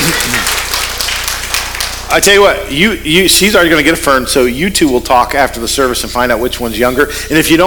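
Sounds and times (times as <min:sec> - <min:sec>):
audience applause: 0:00.0 - 0:02.2
speech: 0:02.1 - 0:07.6.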